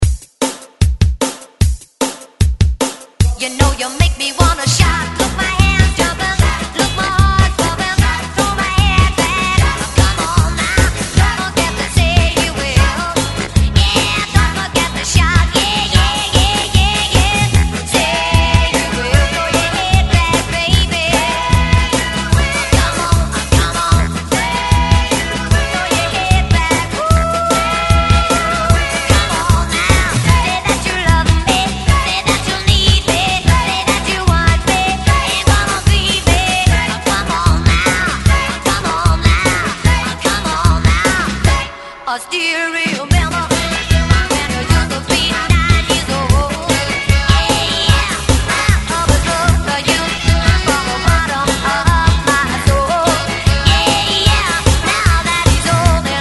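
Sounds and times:
electronic drum beat: 0.0s - 41.7s, 42.8s - 56.1s.

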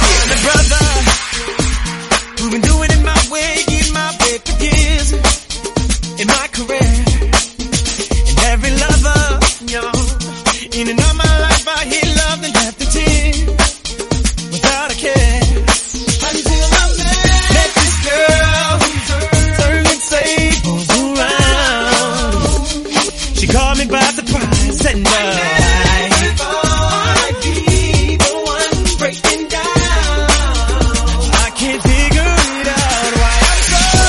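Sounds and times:
music in B flat minor: 0.0s - 34.0s.

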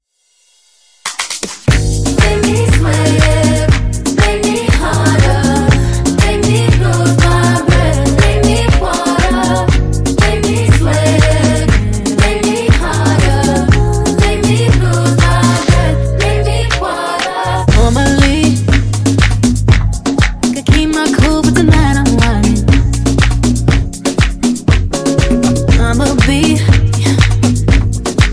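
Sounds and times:
funk music: 1.1s - 28.3s.

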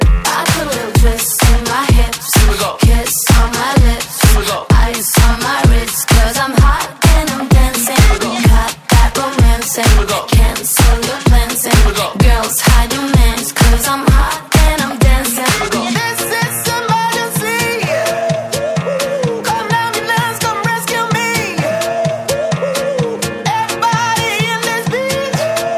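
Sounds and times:
party hype music: 0.0s - 25.7s.

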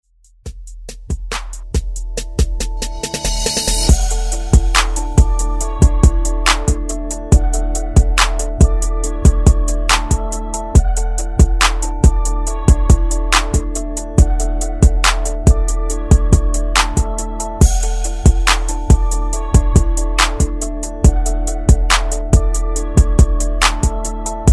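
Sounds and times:
Top40 extended remix: 0.4s - 24.5s.

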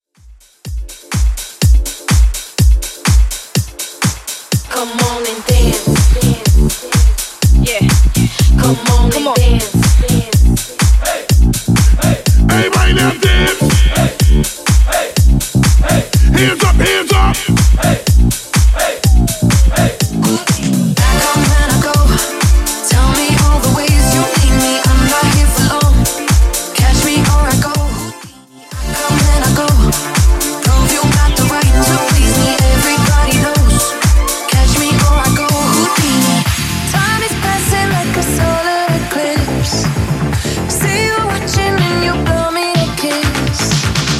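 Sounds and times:
disco hype music: 0.3s - 44.1s.

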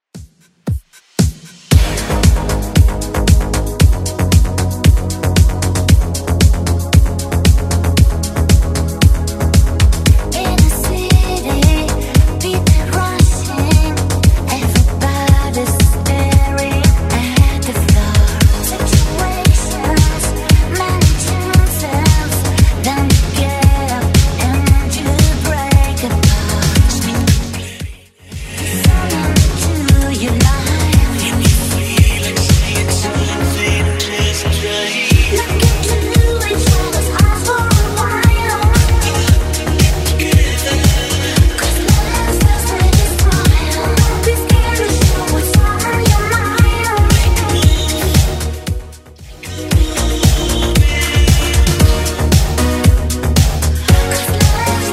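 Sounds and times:
1980s style music at 115 bpm: 0.2s - 54.9s.

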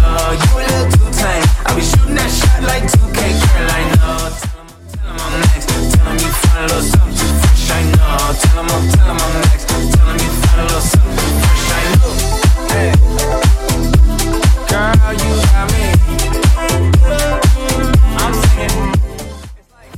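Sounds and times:
Top40 dance music: 0.0s - 19.9s.

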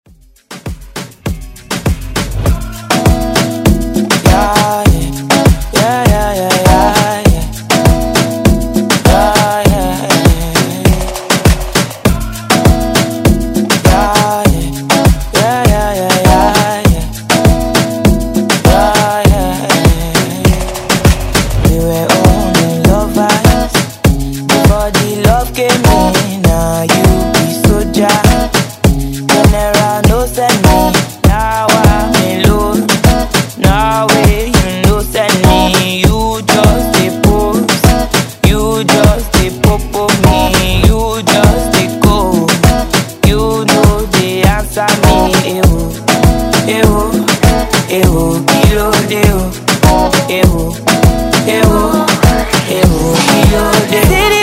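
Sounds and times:
Afro moombahton beat: 0.1s - 54.4s.

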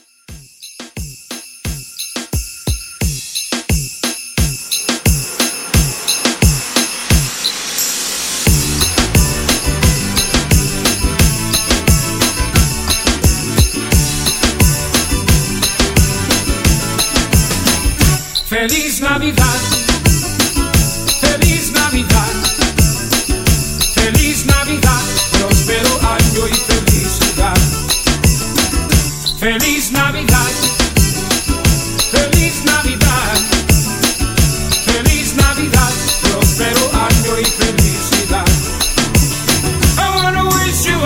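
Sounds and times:
moombahton drum beat: 0.0s - 7.8s, 8.4s - 18.5s, 19.4s - 40.7s
Christmas bells: 0.0s - 40.8s.

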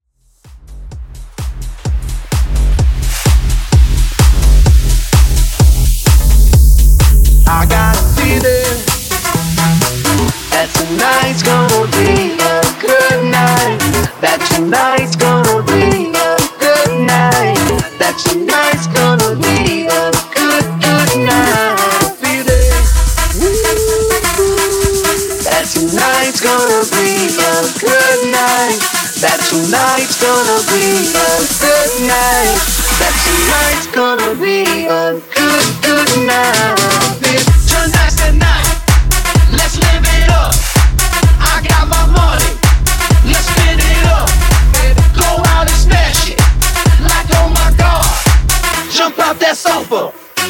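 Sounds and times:
tech house mashup at 128 BPM: 0.1s - 50.4s.

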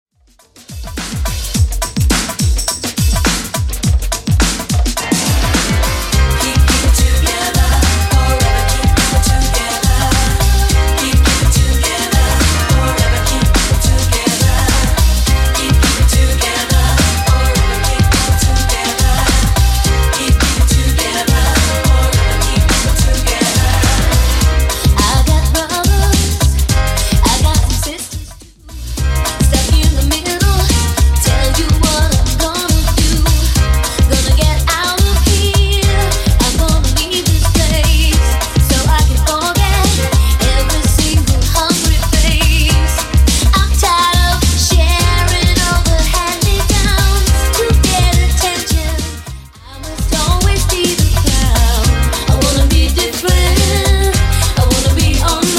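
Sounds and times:
90s beat at 105 bpm: 0.3s - 55.5s.

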